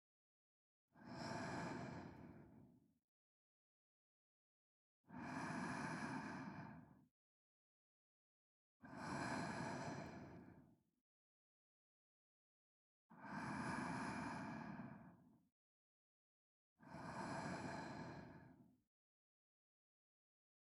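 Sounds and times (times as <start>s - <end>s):
ASMR sleep breathing on left channel: 1.1s - 2.6s, 5.2s - 6.8s, 9.1s - 10.6s, 13.2s - 15.0s, 16.9s - 18.5s.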